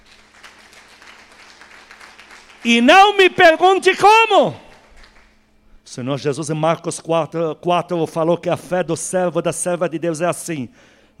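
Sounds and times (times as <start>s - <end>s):
audience applauding: 0.0s - 3.6s, 4.5s - 5.4s
speech: 2.6s - 4.6s, 6.0s - 11.1s.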